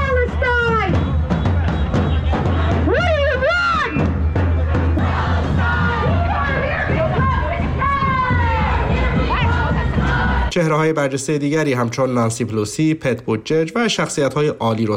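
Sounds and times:
street protest crowd demonstrating against the war in Gaza: 0:00.0 - 0:10.9
speech: 0:10.6 - 0:14.9.

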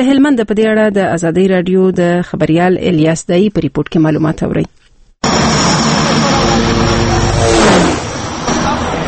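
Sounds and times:
speech: 0:00.0 - 0:05.4
Russian Antonov plane of Pamir Airways landing at Bost airport in Lashkargah: 0:05.2 - 0:09.0.

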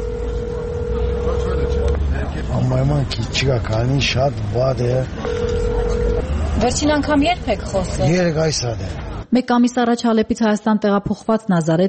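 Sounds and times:
telephone tone during a call attempt to Aleppo: 0:00.0 - 0:02.0, 0:05.2 - 0:06.4
speech: 0:02.4 - 0:05.6, 0:06.6 - 0:11.8.

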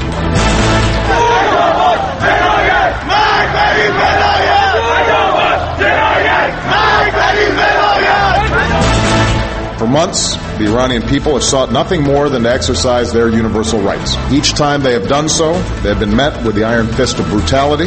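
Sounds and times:
protest crowd shouting: 0:01.0 - 0:09.6
speech: 0:10.0 - 0:17.8.

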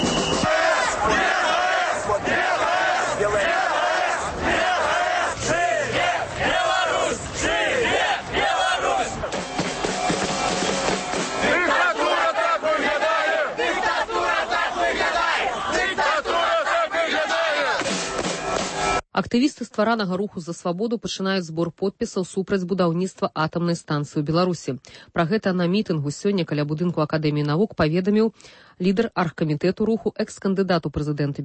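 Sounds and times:
large crowd chanting at a street rally: 0:00.1 - 0:19.0
speech: 0:19.3 - 0:31.4.

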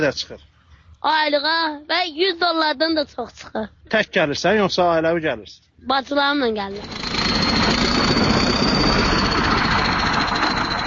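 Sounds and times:
speech: 0:00.0 - 0:07.2
grinding of crushed garbage: 0:06.6 - 0:10.8
tractor engine flattening garbage mounds at a landfill: 0:06.7 - 0:10.8.

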